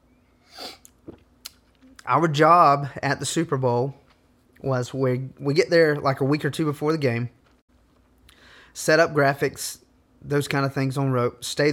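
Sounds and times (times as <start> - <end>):
person sipping a drink: 0.5 - 2.0
speech: 2.1 - 4.0, 4.6 - 7.4, 8.8 - 11.7.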